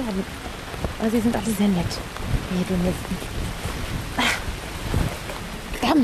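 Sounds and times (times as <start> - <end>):
low wind rumble: 0.0 - 6.0
pouring rain outdoors while a tent is being set up: 0.0 - 6.0
speech: 0.1 - 3.4.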